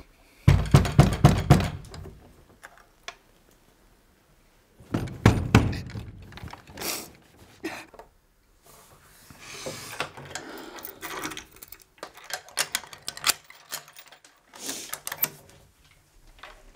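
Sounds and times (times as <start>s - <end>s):
hollow knocking on a door: 0.5s - 1.8s, 4.9s - 6.1s.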